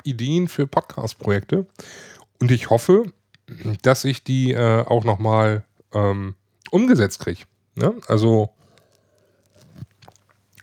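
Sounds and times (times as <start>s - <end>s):
speech: 0.0s - 8.6s
person drinking from a glass: 8.8s - 10.6s.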